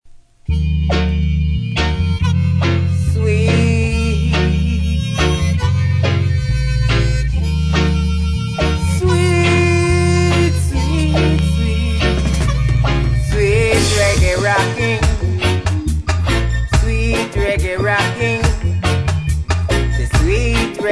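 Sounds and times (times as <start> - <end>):
sweet reggae rocking music: 0.4 - 20.9.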